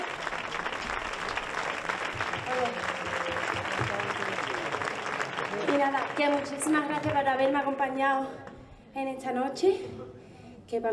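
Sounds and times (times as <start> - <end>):
audience applause: 0.0 - 7.8
speech: 6.2 - 10.1, 10.7 - 10.9.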